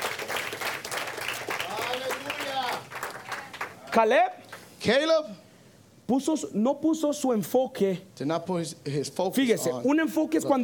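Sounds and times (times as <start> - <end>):
church audience applause: 0.0 - 3.8
speech: 3.9 - 5.4, 6.1 - 10.6.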